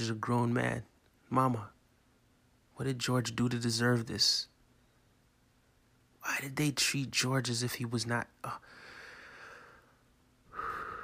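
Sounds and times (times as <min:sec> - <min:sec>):
speech: 0:00.0 - 0:01.7, 0:02.8 - 0:04.5, 0:06.2 - 0:08.8
man breathing heavily: 0:08.6 - 0:11.0.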